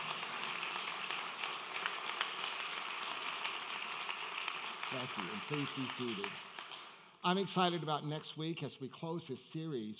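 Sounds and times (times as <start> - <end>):
audience applause: 0.0 - 7.1
speech: 4.9 - 6.5, 7.2 - 9.9.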